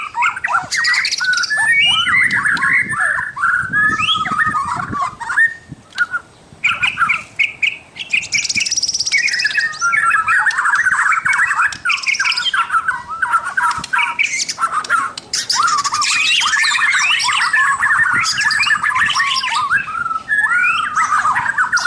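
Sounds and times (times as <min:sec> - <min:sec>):
White-rumped shama pouring out quick chattering and whistled phrases: 0:00.0 - 0:21.8.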